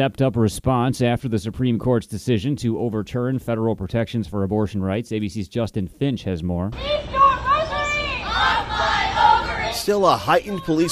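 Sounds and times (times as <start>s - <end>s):
speech: 0.0s - 7.2s, 9.8s - 10.9s
protest crowd shouting and chanting outside Supreme Court: 6.7s - 10.9s.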